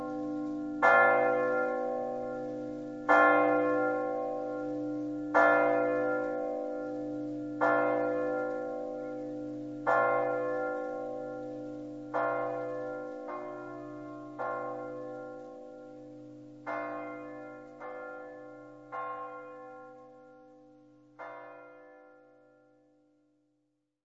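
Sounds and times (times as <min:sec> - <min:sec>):
church bells ringing: 0:00.0 - 0:22.9.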